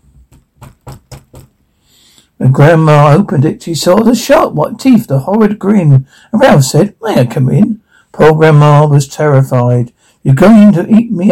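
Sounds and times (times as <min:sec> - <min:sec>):
knocking on a door: 0:00.2 - 0:01.6
speech: 0:02.4 - 0:11.3.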